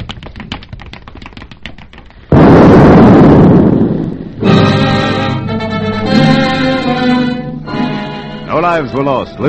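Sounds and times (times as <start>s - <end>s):
rapid regular bomb ticks: 0.0s - 2.4s
bomb explosion outside the Kaiserhof Hotel in a dramatized scene: 2.3s - 5.5s
music: 4.4s - 9.4s
speech: 8.6s - 9.4s.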